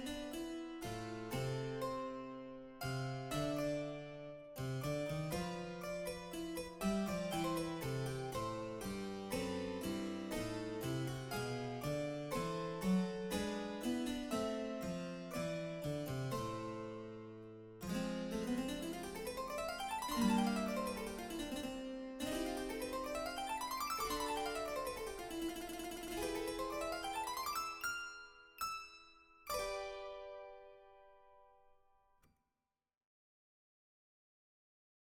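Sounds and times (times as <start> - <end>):
solo harpsichord prelude: 0.0 - 31.7.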